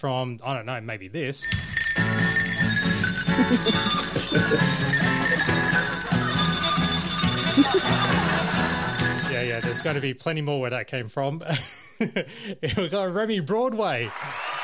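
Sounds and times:
speech: 0.0s - 2.4s, 3.4s - 6.0s, 7.6s - 14.5s
bells ringing in an overlapping peal: 1.4s - 10.1s
laughter: 3.2s - 10.0s, 11.5s - 12.8s.

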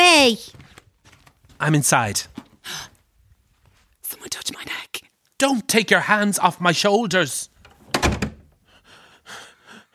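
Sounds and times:
speech: 0.3s - 0.6s, 1.6s - 2.9s, 4.2s - 7.5s
door shutting with a heavy thump: 7.8s - 8.5s.

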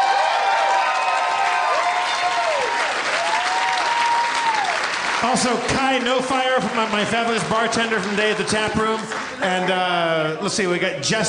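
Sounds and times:
live audience applause and cheering: 0.0s - 10.7s
speech: 5.2s - 11.2s.

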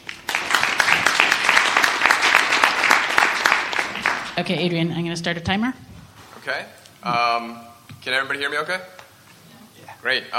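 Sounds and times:
audience applause welcoming guests: 0.0s - 4.5s
speech: 4.4s - 9.0s, 10.0s - 10.3s.

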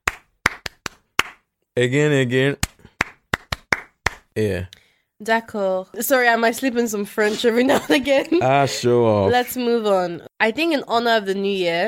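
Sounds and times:
handclaps: 0.0s - 1.4s, 2.6s - 4.3s
speech: 1.8s - 2.7s, 4.4s - 11.8s.

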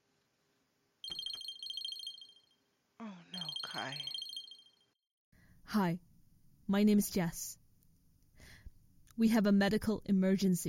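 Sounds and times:
telephone ringing with a high warbling electronic tone: 1.0s - 2.6s, 3.4s - 5.0s
speech: 3.0s - 4.2s, 5.7s - 6.1s, 6.7s - 7.6s, 9.2s - 10.6s.

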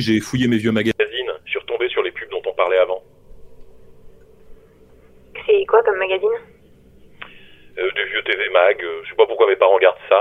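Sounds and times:
speech: 0.0s - 0.9s, 5.8s - 6.6s, 7.8s - 10.1s
voice through a telephone-style filter: 0.0s - 3.0s, 5.4s - 6.4s, 7.8s - 10.1s
faint low hum: 0.0s - 10.1s.

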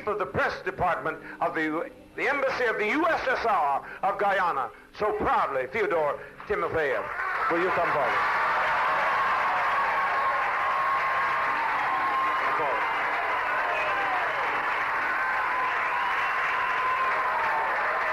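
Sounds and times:
speech: 0.0s - 8.4s
audience applauding to welcome the Soviet embassy's press chief: 7.1s - 18.1s.

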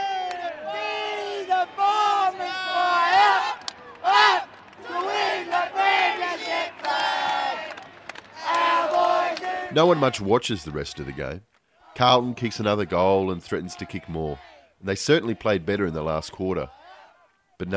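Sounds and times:
football cheer squad singing in stadium: 0.0s - 10.8s
speech: 9.8s - 16.8s, 17.6s - 17.7s.

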